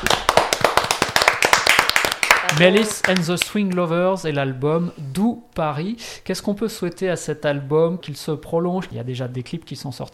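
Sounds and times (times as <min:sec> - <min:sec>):
audience applause: 0:00.0 - 0:03.2
speech: 0:02.5 - 0:10.1.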